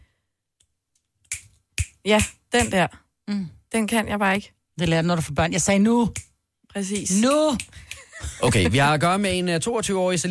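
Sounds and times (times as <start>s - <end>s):
finger snap: 1.2s - 2.8s, 6.9s - 8.1s
speech: 2.0s - 10.3s.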